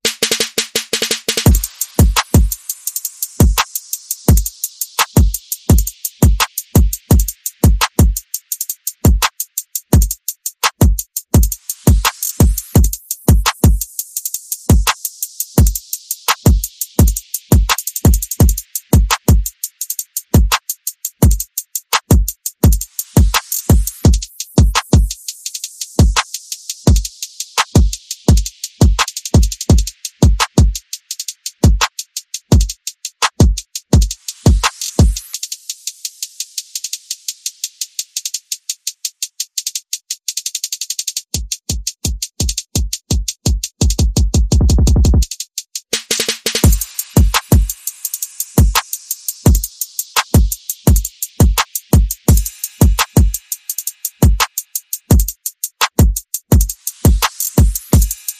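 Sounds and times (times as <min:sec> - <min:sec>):
percussion: 0:00.0 - 0:58.3.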